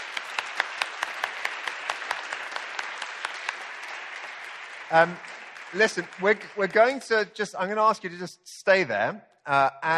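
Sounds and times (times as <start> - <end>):
crowd applause: 0.0 - 7.9
speech: 4.9 - 9.9.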